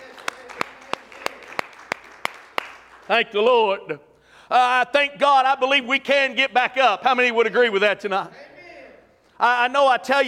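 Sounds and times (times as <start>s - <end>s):
audience applause: 0.0s - 3.2s
speech: 3.1s - 8.4s, 9.4s - 10.2s.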